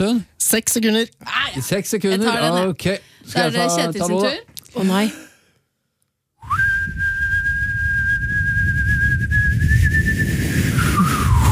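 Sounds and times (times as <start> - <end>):
speech: 0.0 - 5.3
person whistling a long sustained note: 6.4 - 11.5.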